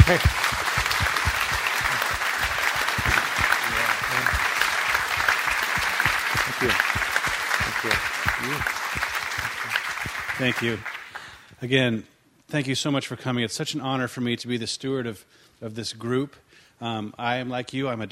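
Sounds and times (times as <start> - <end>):
audience round of applause: 0.0 - 11.4
speech: 0.1 - 0.4, 6.6 - 7.0, 10.4 - 10.9, 11.6 - 18.1.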